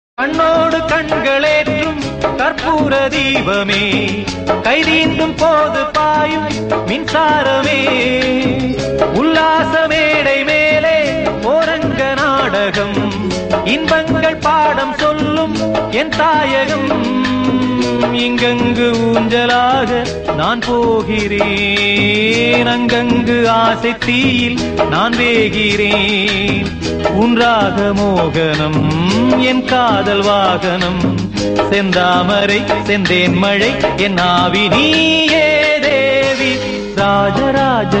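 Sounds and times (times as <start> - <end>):
song: 0.2 - 37.9.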